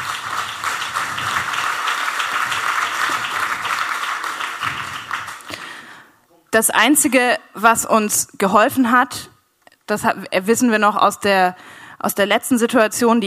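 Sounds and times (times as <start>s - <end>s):
audience applause: 0.0s - 5.8s
speech: 6.6s - 9.3s, 9.9s - 13.2s.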